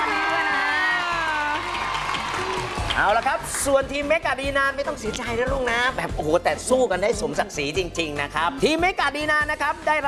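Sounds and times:
crowd applauding: 0:00.0 - 0:04.0
speech: 0:03.0 - 0:10.0.

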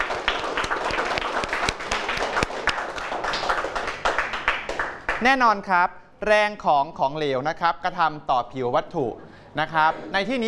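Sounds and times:
students clapping: 0:00.0 - 0:05.3
speech: 0:05.2 - 0:10.4.

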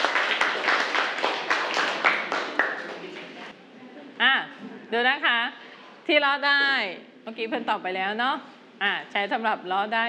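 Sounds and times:
group of students clapping in a steady rhythm: 0:00.0 - 0:03.5
chatter: 0:02.3 - 0:07.3
speech: 0:04.9 - 0:10.0.

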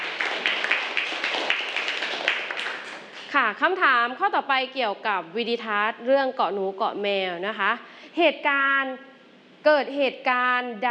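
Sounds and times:
group of children clapping in a room: 0:00.0 - 0:03.2
speech: 0:03.3 - 0:10.9.

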